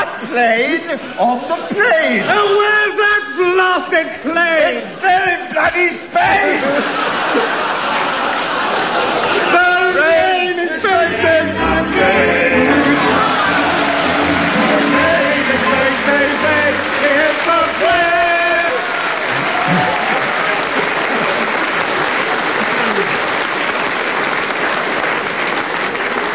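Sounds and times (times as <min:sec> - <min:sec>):
laughter: 0:00.0 - 0:02.7, 0:06.2 - 0:23.3
speech: 0:00.2 - 0:07.7
audience applause: 0:06.2 - 0:10.0, 0:12.1 - 0:26.3
faint voices cheering: 0:12.7 - 0:21.9.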